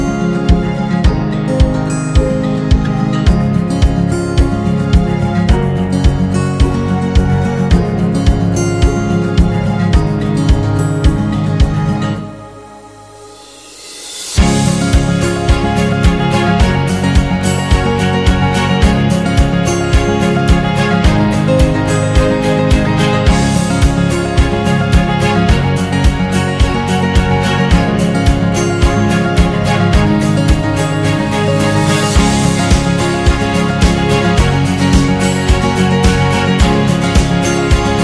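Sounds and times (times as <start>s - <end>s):
upbeat acoustic guitar: 0.0s - 12.6s, 14.2s - 38.0s.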